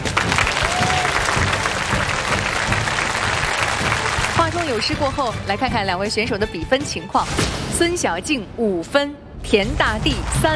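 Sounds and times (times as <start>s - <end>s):
steady applause from an audience: 0.0s - 5.2s
speech: 4.6s - 10.5s.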